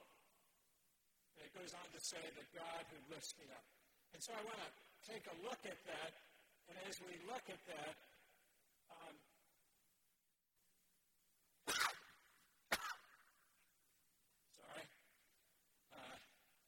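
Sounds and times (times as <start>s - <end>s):
speech: 1.5s - 8.1s, 8.9s - 9.3s
person sneezing in a gathering: 11.6s - 13.3s.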